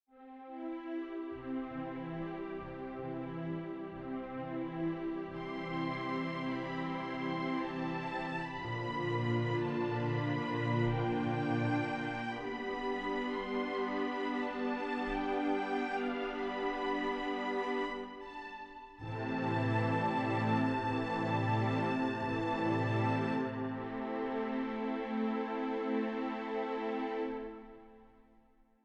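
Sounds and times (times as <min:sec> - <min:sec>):
orchestral love theme: 0:00.2 - 0:28.2.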